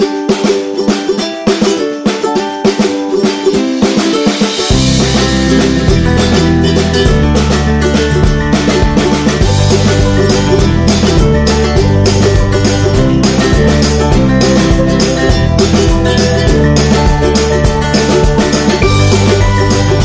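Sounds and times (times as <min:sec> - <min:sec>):
happy acoustic background music: 0:00.0 - 0:20.0.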